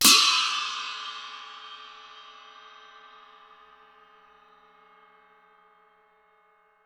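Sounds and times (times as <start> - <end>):
cymbal: 0.0 - 6.8.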